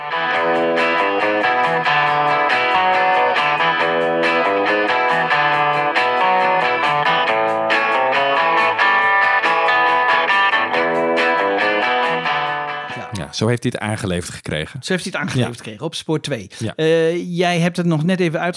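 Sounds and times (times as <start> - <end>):
isolated lead and rhythm electric guitar track: 0.0 - 13.4
speech: 13.4 - 18.5.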